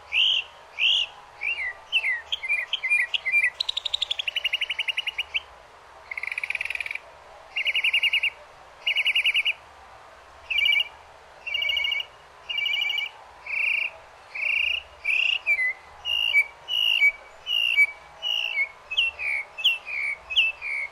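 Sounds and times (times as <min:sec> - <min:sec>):
northern mockingbird singing: 0:00.1 - 0:05.5, 0:06.1 - 0:07.0, 0:07.6 - 0:09.6, 0:10.5 - 0:20.9.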